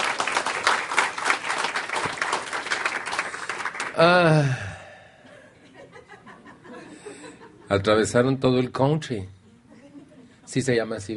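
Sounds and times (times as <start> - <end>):
welcoming applause from audience: 0.0 - 4.5
speech: 4.0 - 4.6, 7.7 - 9.4, 10.5 - 11.1
laughter: 5.6 - 7.9, 9.7 - 10.5.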